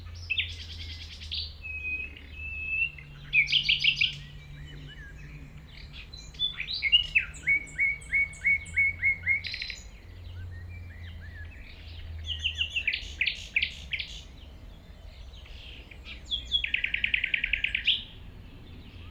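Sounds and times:
common nightingale singing: 0.0 - 19.0.

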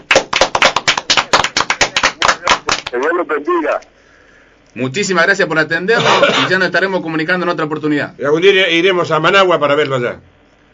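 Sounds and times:
applause, hands clapping: 0.0 - 3.1
speech: 2.9 - 3.9, 4.7 - 10.3.

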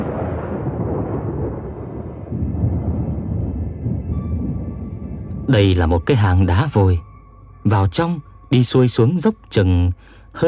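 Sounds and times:
rolling thunder: 0.0 - 6.1
speech: 5.5 - 10.4.

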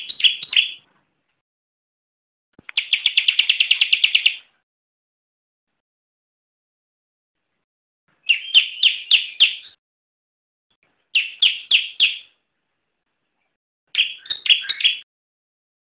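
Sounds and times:
bar-winged prinia song with rapid trill and ringing chirps: 0.0 - 0.9, 2.7 - 4.5, 8.2 - 9.8, 11.1 - 12.4, 13.9 - 15.1.

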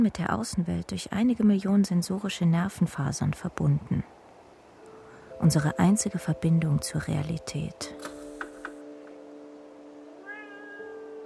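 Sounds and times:
speech: 0.0 - 4.2, 5.4 - 8.1
cat chirps: 10.2 - 11.1.

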